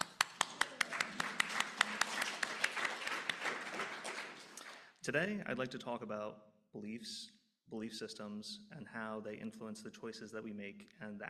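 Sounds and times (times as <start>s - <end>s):
audience applause: 0.0s - 4.9s
speech: 5.0s - 11.2s.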